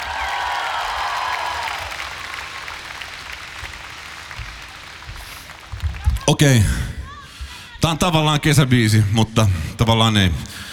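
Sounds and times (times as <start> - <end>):
audience applause: 0.0 - 6.6
speech: 6.3 - 6.9, 7.9 - 10.6.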